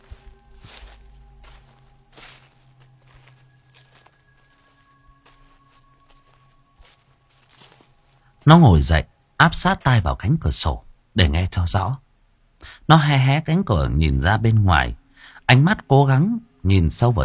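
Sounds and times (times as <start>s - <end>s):
footsteps on dry leaves: 0.0s - 8.5s
speech: 8.5s - 12.0s, 12.6s - 17.2s.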